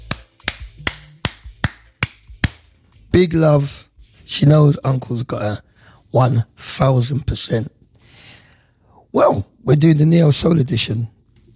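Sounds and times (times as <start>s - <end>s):
hand claps: 0.0s - 2.8s
speech: 3.2s - 7.8s, 9.2s - 11.2s.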